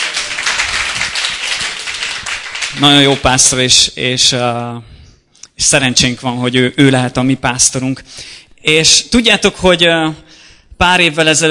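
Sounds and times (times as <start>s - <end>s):
church congregation applauding their pastor: 0.0s - 3.6s
speech: 2.8s - 5.0s, 5.6s - 10.2s, 10.8s - 11.4s.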